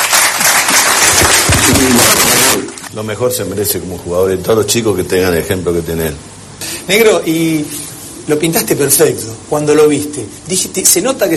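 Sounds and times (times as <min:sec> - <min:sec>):
crowd applause: 0:00.0 - 0:02.9
speech: 0:03.0 - 0:06.3, 0:06.9 - 0:11.3.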